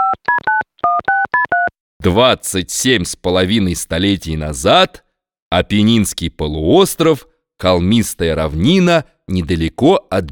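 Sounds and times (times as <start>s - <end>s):
keypad beeps as a time machine is dialed: 0.0s - 1.7s
speech: 2.0s - 10.3s.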